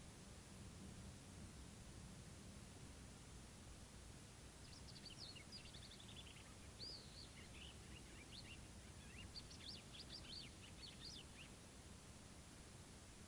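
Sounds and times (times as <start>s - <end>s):
background hiss: 0.0s - 13.2s
bird whistling song: 4.6s - 11.5s.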